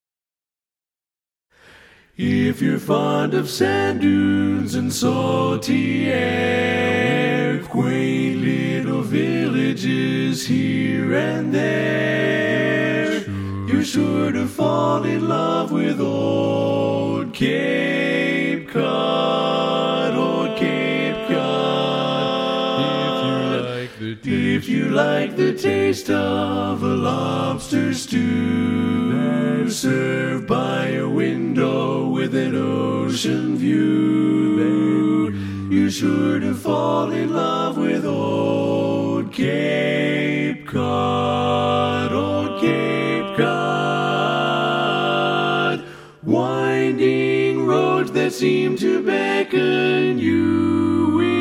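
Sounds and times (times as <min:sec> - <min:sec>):
tenor singing: 0:02.2 - 0:51.3.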